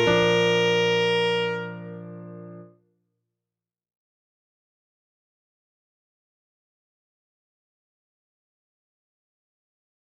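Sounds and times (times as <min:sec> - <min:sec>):
saxophone: 0:00.0 - 0:02.8.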